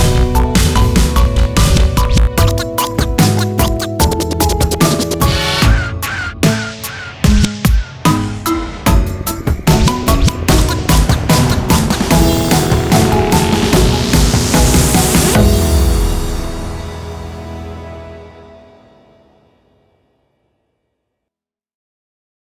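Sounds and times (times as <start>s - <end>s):
turntable scratching: 0.0s - 8.2s, 9.3s - 16.2s.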